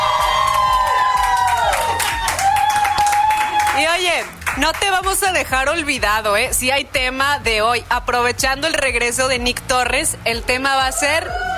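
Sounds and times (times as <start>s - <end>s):
high-pitched screams and whoops: 0.0s - 3.9s, 10.8s - 11.5s
crowd shouting and cheering: 0.0s - 4.0s, 10.7s - 11.5s
speech: 4.6s - 11.5s.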